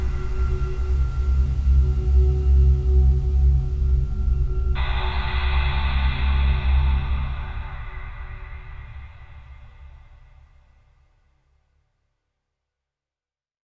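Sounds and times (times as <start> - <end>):
horror drone atmosphere: 0.0 - 10.8.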